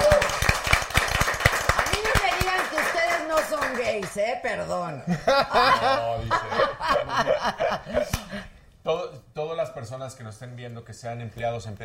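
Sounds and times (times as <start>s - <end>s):
applause: 0.0s - 4.3s
speech: 4.0s - 11.8s
laughter: 5.1s - 8.5s.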